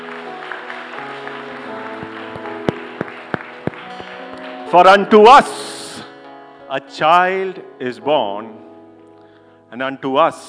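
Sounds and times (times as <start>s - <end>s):
audience clapping: 0.0s - 5.1s
speech: 4.7s - 5.7s, 6.7s - 8.6s, 9.7s - 10.4s.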